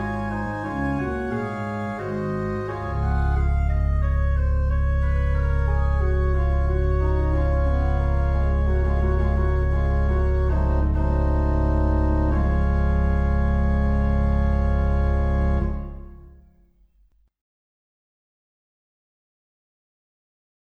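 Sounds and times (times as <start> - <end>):
organ: 0.0 - 16.6.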